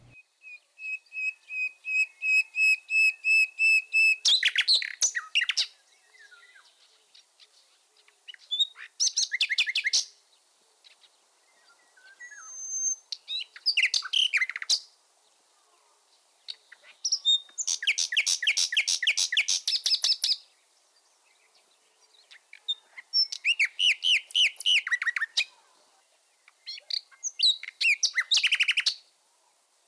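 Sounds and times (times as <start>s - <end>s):
Common nightingale song: 0.0s - 29.8s.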